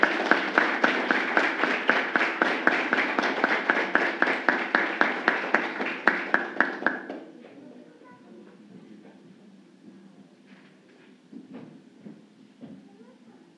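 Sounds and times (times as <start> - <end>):
audience applause: 0.0 - 7.3.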